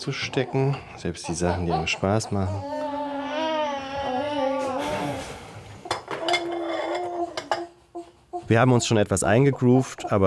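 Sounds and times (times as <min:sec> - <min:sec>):
dishes and cutlery clattering in a kitchen: 0:00.0 - 0:02.1, 0:05.8 - 0:08.0
speech: 0:00.0 - 0:02.8, 0:08.5 - 0:10.2
infant crying: 0:00.1 - 0:05.3, 0:06.1 - 0:09.0.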